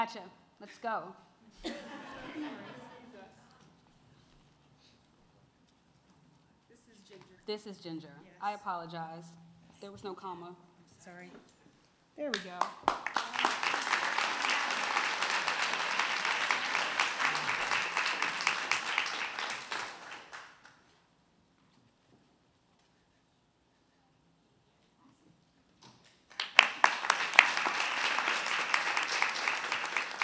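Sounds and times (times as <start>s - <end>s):
speech: 0.0s - 2.8s, 7.1s - 11.6s, 12.2s - 13.2s
laughter: 1.5s - 3.7s, 13.2s - 20.3s
audience applause: 12.6s - 20.8s, 26.3s - 30.2s.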